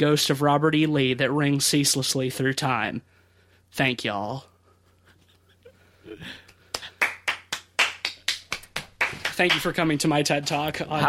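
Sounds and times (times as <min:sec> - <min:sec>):
speech: 0:00.0 - 0:04.5, 0:06.1 - 0:06.4, 0:09.4 - 0:11.0
applause: 0:06.7 - 0:09.9.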